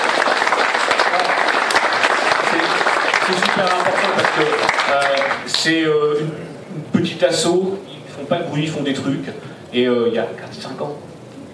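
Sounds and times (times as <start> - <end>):
audience applause: 0.0 - 5.8
speech: 3.3 - 11.5.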